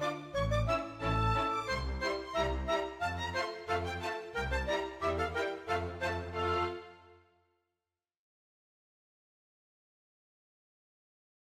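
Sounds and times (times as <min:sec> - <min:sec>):
polka music: 0:00.0 - 0:07.1.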